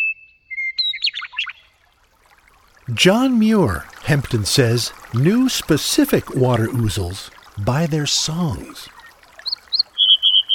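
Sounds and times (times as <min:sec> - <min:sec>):
meadowlark singing: 0:00.0 - 0:01.7, 0:07.9 - 0:10.5
speech: 0:02.9 - 0:09.0.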